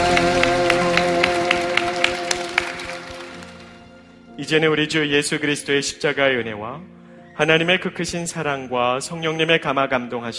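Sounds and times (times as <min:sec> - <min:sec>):
audience applauding: 0:00.0 - 0:04.0
speech: 0:04.4 - 0:10.3.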